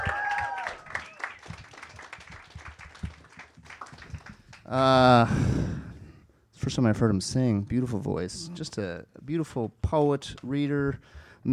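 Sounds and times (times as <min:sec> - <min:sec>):
whistles and cheers: 0:00.0 - 0:01.6
audience applause: 0:00.0 - 0:04.6
speech: 0:04.7 - 0:05.8, 0:06.7 - 0:11.5.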